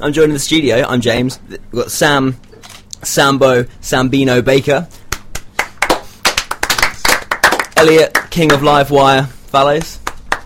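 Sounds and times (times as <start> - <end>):
speech: 0.0 - 5.0, 7.8 - 10.0
several people clapping: 5.1 - 10.4.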